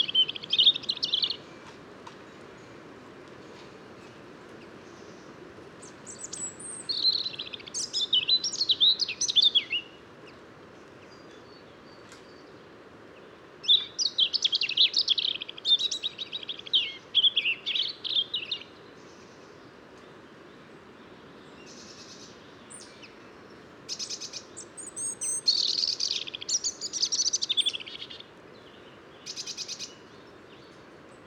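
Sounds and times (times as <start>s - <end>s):
European robin singing: 0.0s - 1.6s, 4.8s - 10.4s, 13.2s - 19.6s, 20.6s - 31.2s.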